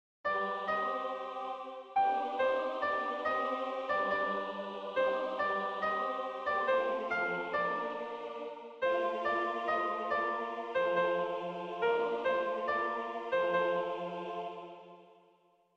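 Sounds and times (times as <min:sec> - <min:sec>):
soprano singing: 0:00.3 - 0:15.2.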